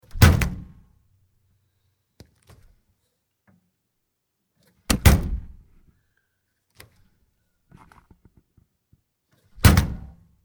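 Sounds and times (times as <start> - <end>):
door: 0.0 - 0.7, 4.9 - 5.6, 9.6 - 10.2.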